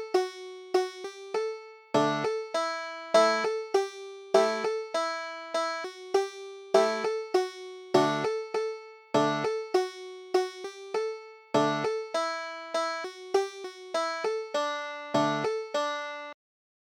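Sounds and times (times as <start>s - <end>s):
banjo: 0.0s - 16.4s.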